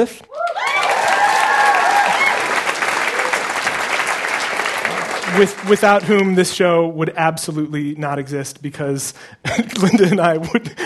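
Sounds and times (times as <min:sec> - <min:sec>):
speech: 0:00.0 - 0:00.4, 0:05.3 - 0:10.8
audience applause: 0:00.3 - 0:06.3.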